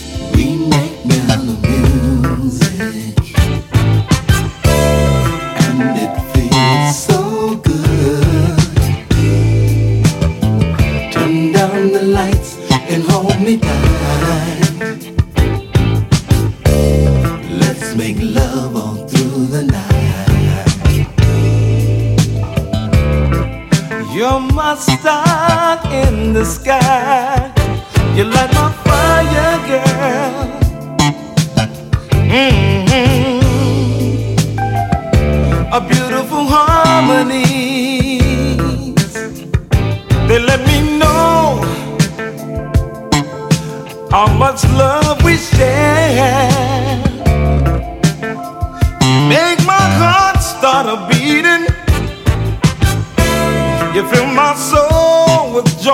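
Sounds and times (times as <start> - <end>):
mellow music: 0.0 - 55.9.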